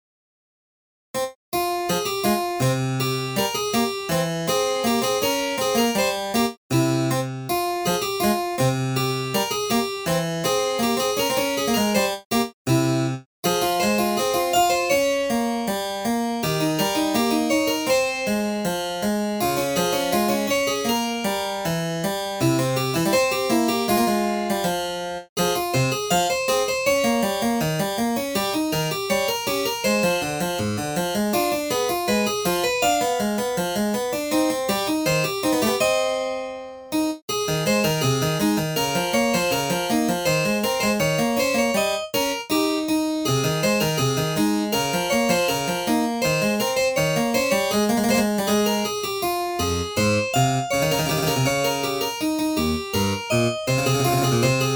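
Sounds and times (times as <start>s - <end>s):
invention in C minor: 1.2s - 54.7s.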